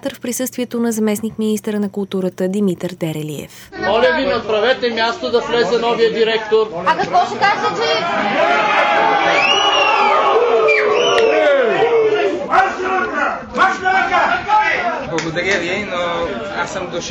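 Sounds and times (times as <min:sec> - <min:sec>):
speech: 0:00.0 - 0:09.6, 0:15.1 - 0:17.0
crowd booing and jeering: 0:07.6 - 0:15.1
crowd whistling: 0:09.2 - 0:11.6.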